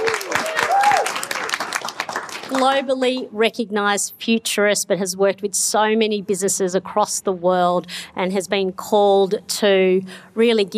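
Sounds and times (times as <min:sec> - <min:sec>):
crowd clapping for a panellist at a panel on the future of work: 0:00.0 - 0:02.9
speech: 0:02.5 - 0:10.7.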